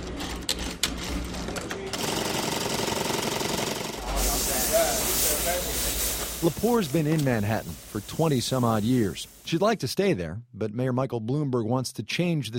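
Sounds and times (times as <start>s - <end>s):
sewing machines rattling in a Garment District dress workshop: 0.0s - 4.0s
hiss of steam as fabric is steamed: 4.0s - 9.6s
speech: 6.4s - 12.5s.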